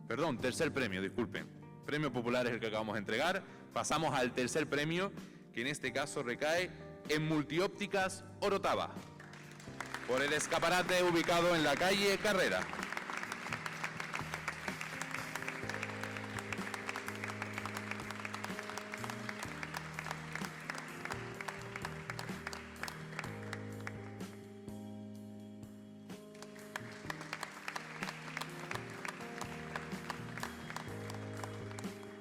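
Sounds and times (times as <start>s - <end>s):
speech: 0.1s - 9.1s, 10.1s - 12.8s
audience applause for a prize: 9.2s - 24.3s, 26.3s - 32.1s.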